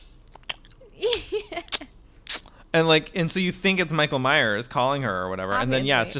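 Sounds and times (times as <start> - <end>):
person imitating chewing into a phone: 0.3 - 2.6
speech: 2.8 - 6.1.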